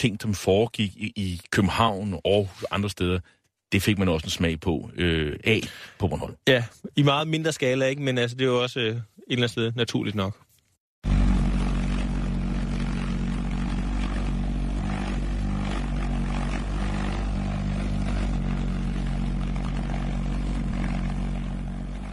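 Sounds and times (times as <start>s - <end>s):
speech: 0.0s - 10.4s
V1 flying bomb pulse jet engine: 11.0s - 22.1s.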